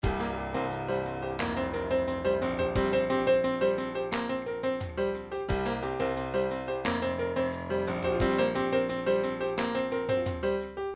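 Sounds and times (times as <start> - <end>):
trip-hop midi music: 0.0 - 10.8.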